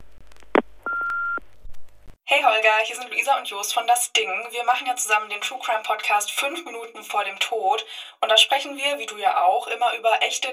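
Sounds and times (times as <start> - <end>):
answering machine beep: 0.9 - 1.4
speech: 2.3 - 10.5.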